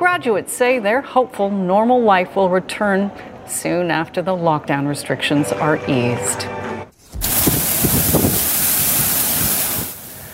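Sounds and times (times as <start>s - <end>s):
speech: 0.0s - 6.6s
strong wind in thunderstorm: 7.2s - 9.9s
heavy rain in thunderstorm: 7.2s - 10.3s.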